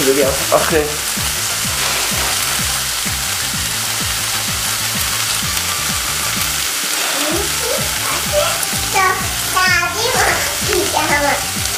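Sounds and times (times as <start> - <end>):
sausages frying in a pan: 0.0 - 11.7
speech: 0.1 - 1.4, 9.0 - 11.6
scraping while stirring in a pan: 1.6 - 3.1.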